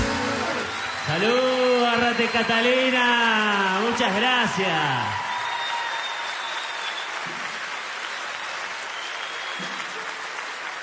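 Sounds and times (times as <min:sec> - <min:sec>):
audience applause: 0:00.0 - 0:10.8
speech: 0:01.1 - 0:05.2.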